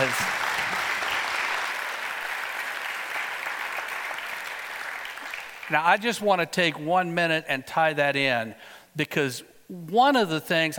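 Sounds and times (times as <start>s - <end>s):
audience applause: 0.0s - 5.8s
speech: 5.7s - 10.7s.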